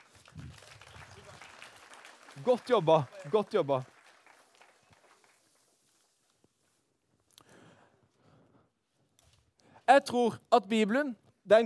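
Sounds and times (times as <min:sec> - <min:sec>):
audience applause: 0:00.0 - 0:05.8
speech: 0:02.4 - 0:03.9, 0:09.9 - 0:11.6.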